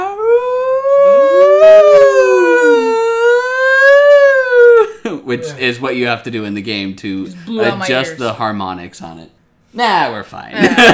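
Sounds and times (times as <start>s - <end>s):
person imitating the howl of a video game wolf or coyote: 0.0s - 5.0s
speech: 5.3s - 10.9s
laughter: 10.6s - 10.9s.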